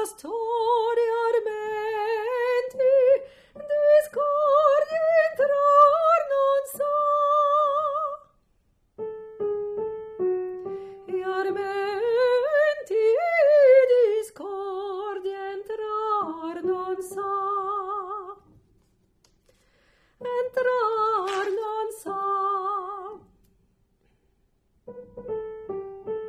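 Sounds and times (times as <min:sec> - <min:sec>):
soprano singing: 0:00.0 - 0:08.4, 0:11.0 - 0:18.5, 0:20.2 - 0:23.3.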